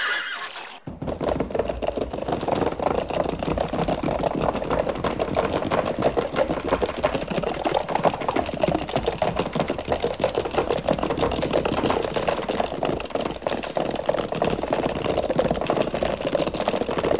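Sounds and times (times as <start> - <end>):
horse hoofbeats in a fast steady clip-clop: 0.0 - 17.1.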